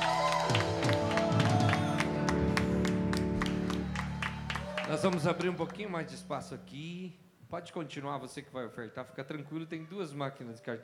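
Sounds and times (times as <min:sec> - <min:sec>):
audience applauding: 0:00.0 - 0:06.3
sustained music: 0:00.0 - 0:07.2
speech: 0:05.0 - 0:10.8.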